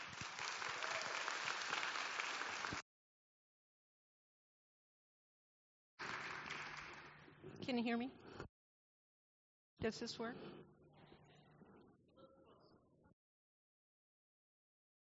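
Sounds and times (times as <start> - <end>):
audience applause welcoming a guest speaker at a session: 0.0 - 2.8, 6.0 - 7.2
speech: 7.7 - 8.5, 9.8 - 10.8.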